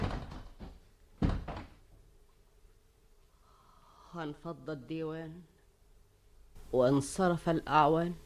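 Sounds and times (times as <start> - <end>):
wooden door being shut: 0.0 - 1.8
speech: 4.2 - 5.5, 6.7 - 8.2.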